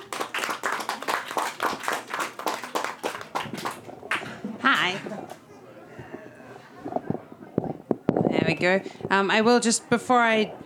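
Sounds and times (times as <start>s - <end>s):
audience clapping and applause: 0.0s - 5.0s
speech: 4.7s - 5.1s, 8.6s - 10.6s.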